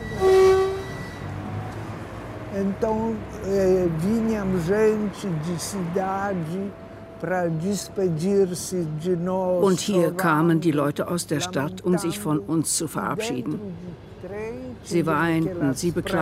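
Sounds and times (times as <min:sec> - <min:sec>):
train horn: 0:00.0 - 0:01.3
low rumbling railway station background: 0:00.0 - 0:16.1
speech: 0:02.5 - 0:16.1.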